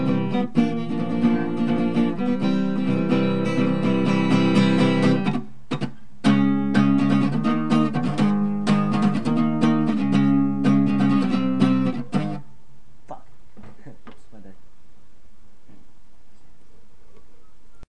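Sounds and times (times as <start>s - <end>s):
acoustic music: 0.0s - 12.6s.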